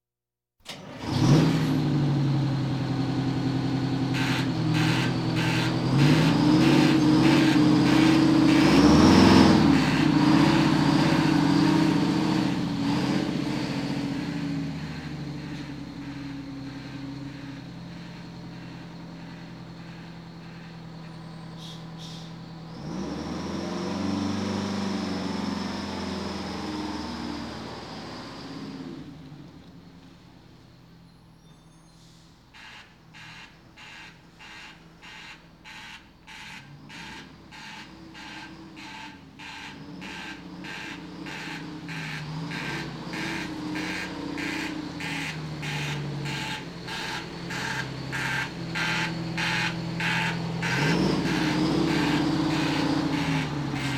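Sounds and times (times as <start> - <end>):
fire engine sirens: 0.7 - 29.5, 32.4 - 53.9
police sirens: 1.8 - 22.4, 32.6 - 53.9.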